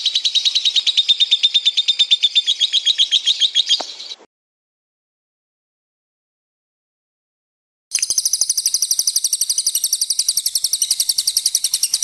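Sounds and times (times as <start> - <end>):
lovebird chirp: 0.0 - 4.3, 7.9 - 12.0.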